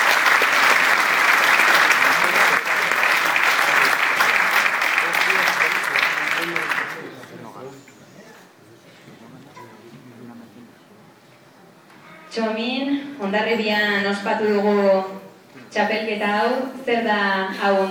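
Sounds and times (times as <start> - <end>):
audience applause: 0.0 - 7.5
speech: 12.4 - 17.8.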